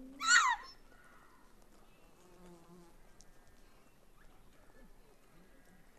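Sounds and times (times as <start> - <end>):
gelada harsh screaming: 0.2 - 0.7.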